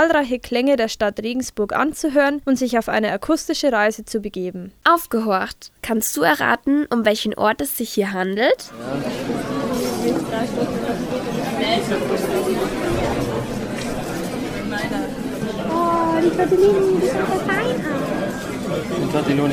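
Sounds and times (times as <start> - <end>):
speech: 0.0 - 13.3, 16.2 - 19.5
university cafeteria diners chatting: 7.1 - 19.5.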